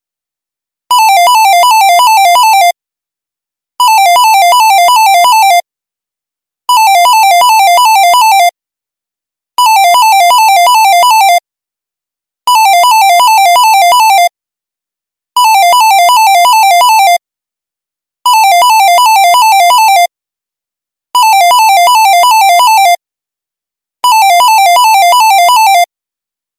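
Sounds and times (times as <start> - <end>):
office phone ringing: 0.9 - 2.8, 3.8 - 5.6, 6.7 - 8.5, 9.6 - 11.4, 12.5 - 14.3, 15.4 - 17.2, 18.3 - 20.1, 21.2 - 23.0, 24.0 - 25.9.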